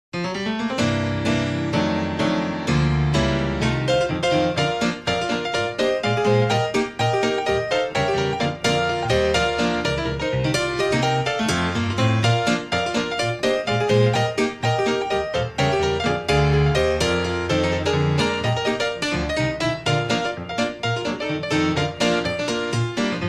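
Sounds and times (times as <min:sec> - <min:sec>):
old time gospel piano: 0:00.2 - 0:23.2.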